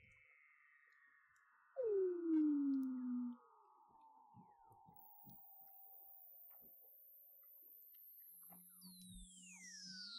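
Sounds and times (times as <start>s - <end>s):
Weddell seal underwater vocalizations: 1.8s - 3.4s.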